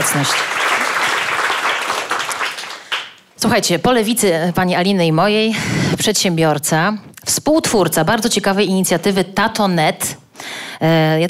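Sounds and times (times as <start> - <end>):
crowd clapping: 0.0 - 3.3
speech: 0.1 - 0.7, 3.4 - 11.2.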